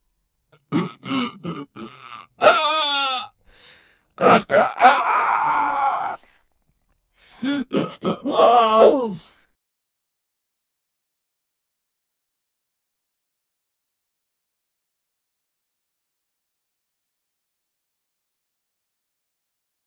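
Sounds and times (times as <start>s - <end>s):
angry human voice: 0.7s - 3.4s, 4.2s - 6.2s, 7.4s - 9.3s.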